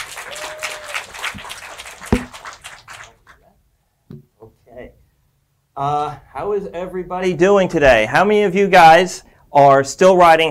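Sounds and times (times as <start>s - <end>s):
audience clapping at a church service welcoming a speaker: 0.0s - 3.4s
sharp knock: 2.1s - 2.4s
speech: 5.8s - 10.4s.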